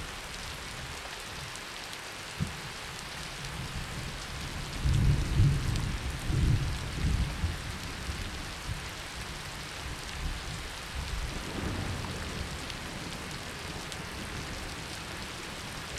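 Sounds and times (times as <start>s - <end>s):
thunderstorm: 3.6s - 8.9s, 9.8s - 15.9s.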